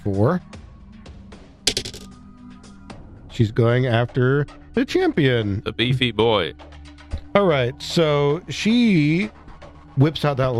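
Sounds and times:
speech: 0.0s - 0.6s, 3.4s - 6.7s, 7.4s - 9.4s, 10.0s - 10.5s
four-sided die clattering across a hard surface: 1.7s - 2.1s.

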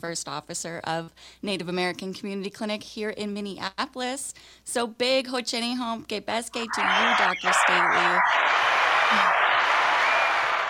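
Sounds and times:
speech: 0.0s - 9.4s
applause: 8.3s - 10.6s.

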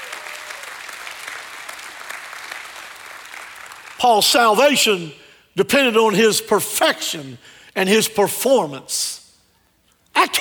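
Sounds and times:
audience applause: 0.0s - 4.0s
speech: 4.0s - 9.2s.

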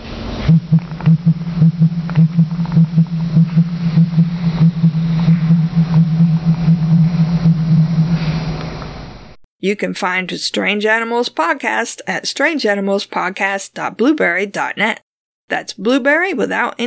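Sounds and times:
male pigeon's loud booming courtship call: 0.2s - 8.4s
speech: 0.5s - 3.6s, 9.6s - 16.8s.

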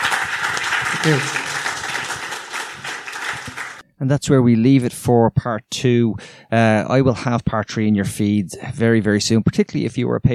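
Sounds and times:
crowd applause: 0.0s - 3.8s
speech: 1.0s - 1.4s, 4.0s - 10.3s.

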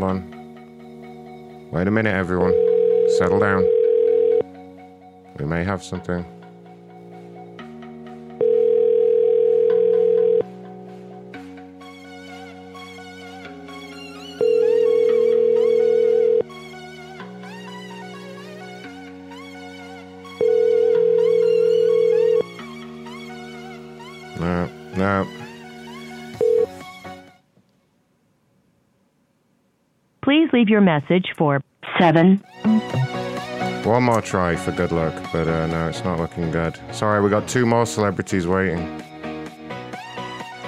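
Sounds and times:
speech: 0.0s - 0.4s, 1.7s - 3.8s, 5.4s - 6.4s, 30.6s - 32.5s, 33.8s - 39.1s
melodic tune: 0.0s - 27.2s, 32.4s - 40.6s
telephone ring tones on an outgoing call: 2.4s - 4.5s, 8.4s - 10.5s, 14.4s - 16.5s, 20.4s - 22.5s, 26.4s - 26.8s.

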